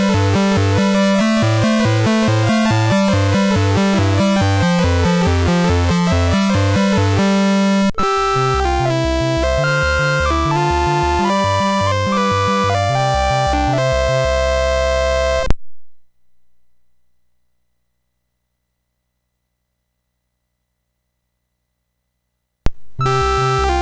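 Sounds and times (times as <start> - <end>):
BASIC SID MOS6581R3 chip sound: 0.0 - 15.5, 23.0 - 23.8.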